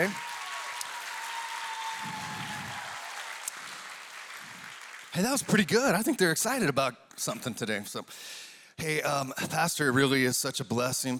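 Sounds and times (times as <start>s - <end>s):
speech: 0.0s - 0.2s, 5.2s - 11.1s
audience applause: 0.0s - 6.2s.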